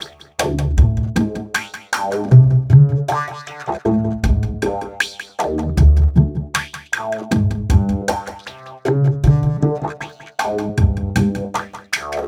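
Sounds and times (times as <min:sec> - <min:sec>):
remixed acoustic bass: 0:00.4 - 0:01.5, 0:02.3 - 0:03.2, 0:03.9 - 0:04.8, 0:05.6 - 0:06.6, 0:07.3 - 0:08.2, 0:08.9 - 0:10.0, 0:10.7 - 0:11.5.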